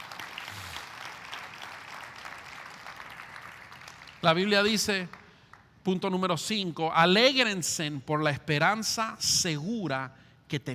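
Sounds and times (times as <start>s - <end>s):
audience applause: 0.0s - 4.2s
speech: 4.2s - 5.2s, 5.8s - 10.7s.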